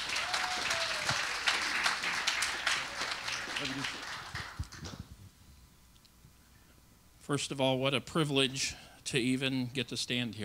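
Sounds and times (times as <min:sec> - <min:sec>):
church audience applauding a guest speaker: 0:00.0 - 0:04.9
speech: 0:03.6 - 0:04.0, 0:07.3 - 0:10.4.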